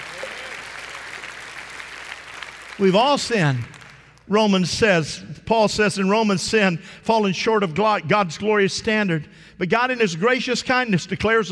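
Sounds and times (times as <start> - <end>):
audience applause: 0.0 - 4.1
speech: 2.8 - 11.5.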